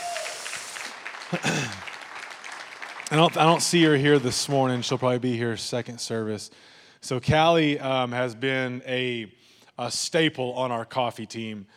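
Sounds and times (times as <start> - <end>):
audience applause: 0.0 - 5.1
speech: 1.3 - 1.8, 3.1 - 11.7.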